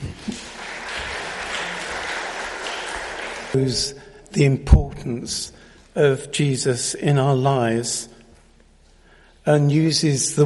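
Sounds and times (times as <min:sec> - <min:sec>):
audience clapping: 0:00.0 - 0:03.9
speech: 0:03.5 - 0:08.2, 0:09.5 - 0:10.4.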